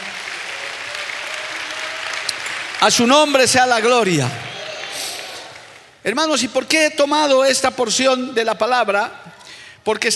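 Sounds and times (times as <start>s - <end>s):
audience applause: 0.0s - 6.0s
speech: 2.8s - 4.5s, 6.0s - 10.1s.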